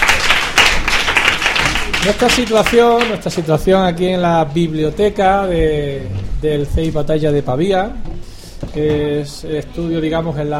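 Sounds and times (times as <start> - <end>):
applause for sixth-grade pupils in a school library: 0.0 - 3.5
speech: 2.0 - 8.1, 8.7 - 10.5.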